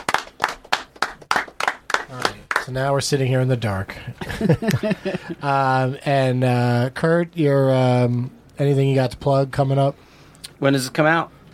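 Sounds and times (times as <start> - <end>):
people clapping hands: 0.0 - 2.8
speech: 2.1 - 10.0, 10.6 - 11.4
laughter: 4.2 - 5.5.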